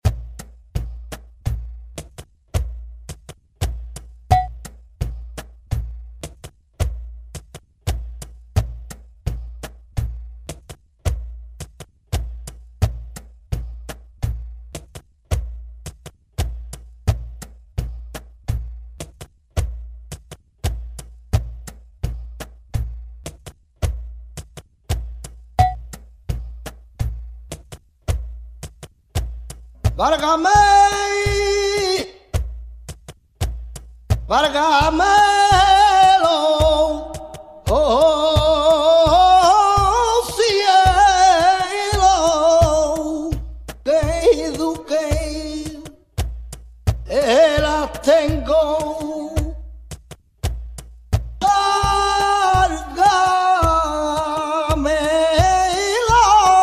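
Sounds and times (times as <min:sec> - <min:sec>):
flamenco siguiriya dance: 0:00.0 - 0:56.6.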